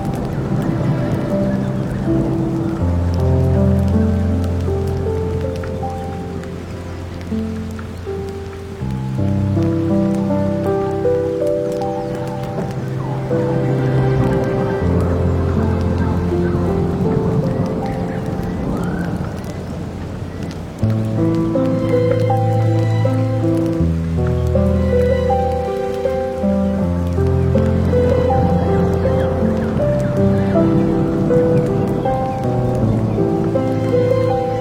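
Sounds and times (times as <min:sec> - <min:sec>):
campfire: 0:00.0 - 0:34.6
forest ambience: 0:00.0 - 0:34.6
rain: 0:00.0 - 0:34.6
sea: 0:00.0 - 0:34.6
water: 0:00.0 - 0:34.6
wind: 0:00.0 - 0:34.6.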